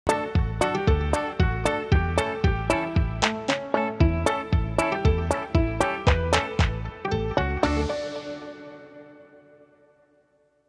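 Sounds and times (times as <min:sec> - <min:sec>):
happy media music opener: 0:00.1 - 0:09.3.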